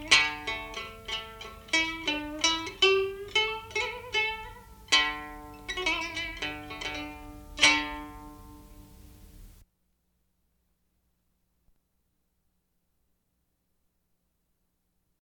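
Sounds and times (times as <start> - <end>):
classical quintet music with moon lute: 0.0 - 9.6.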